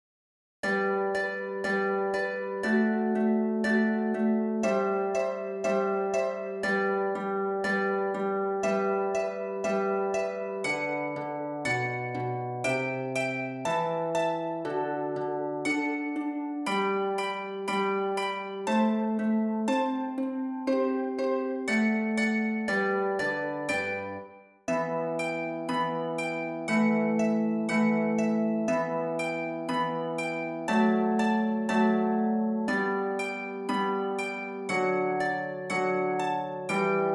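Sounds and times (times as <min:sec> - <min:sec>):
harp: 0:00.6 - 0:37.1.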